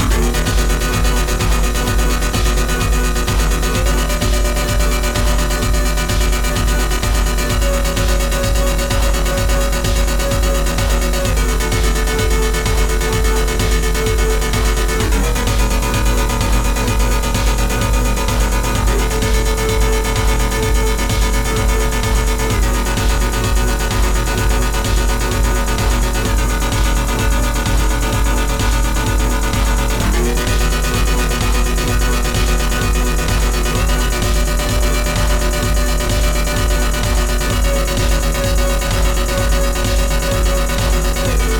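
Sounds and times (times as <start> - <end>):
drum pattern: 0.0 - 41.5.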